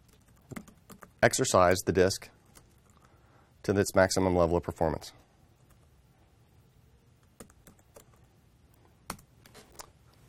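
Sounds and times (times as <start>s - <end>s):
typing a password on a computer keyboard: 0.0s - 1.2s, 7.2s - 8.2s, 9.1s - 9.3s
speech: 1.2s - 2.4s, 3.7s - 5.2s.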